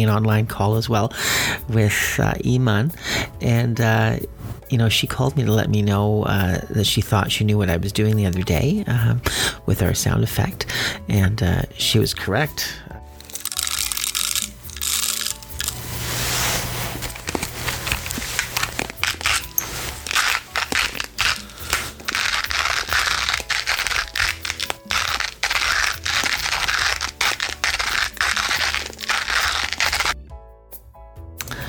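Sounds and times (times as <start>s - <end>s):
speech: 0.0s - 12.9s
hand grinder crunching coffee beans: 13.1s - 30.2s.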